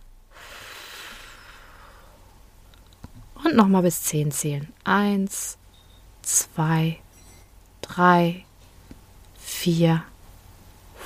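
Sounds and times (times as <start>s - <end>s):
deep exhale during a breathing exercise: 0.3s - 2.3s
speech: 3.4s - 5.6s, 6.2s - 7.0s, 7.9s - 8.5s, 9.6s - 10.1s.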